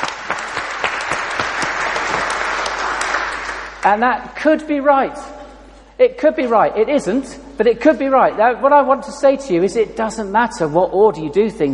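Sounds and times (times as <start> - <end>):
audience applause: 0.0 - 3.8
speech: 3.8 - 5.4, 6.0 - 11.7.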